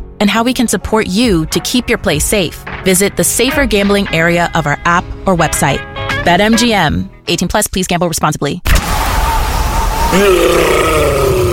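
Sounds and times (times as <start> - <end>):
speech: 0.2 - 8.8, 10.1 - 11.4
monster roar of a yeti: 10.1 - 11.5.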